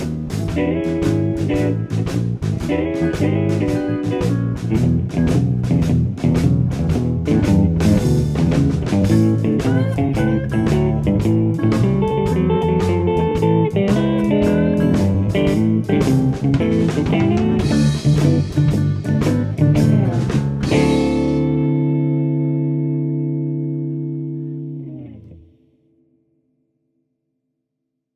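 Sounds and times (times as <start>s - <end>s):
major blues guitar at 112 tempo: 0.0s - 26.1s.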